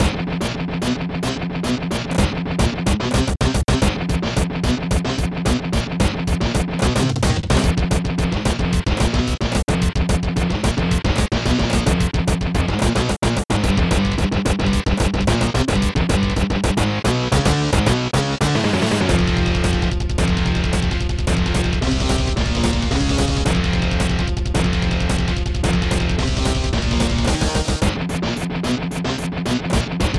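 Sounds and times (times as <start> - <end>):
metal music: 0.0 - 30.1.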